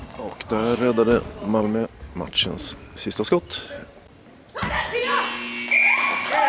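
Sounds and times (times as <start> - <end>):
speech: 0.2 - 3.9
final buzzer ending handball match: 5.2 - 6.4.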